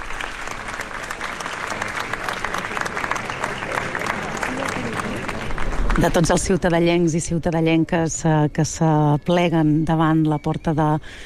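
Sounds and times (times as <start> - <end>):
crowd applauding outside a cathedral: 0.0 - 6.9
speech: 6.0 - 11.2.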